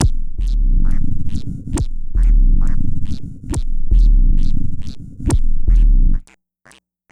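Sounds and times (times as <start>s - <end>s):
synth bass: 0.0s - 6.2s.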